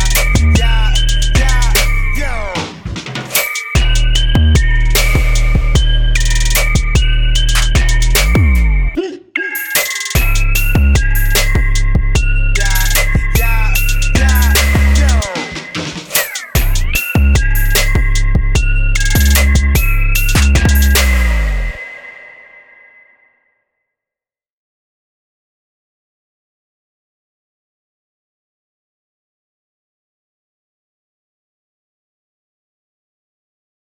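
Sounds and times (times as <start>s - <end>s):
trap beat samples: 0.0s - 21.8s.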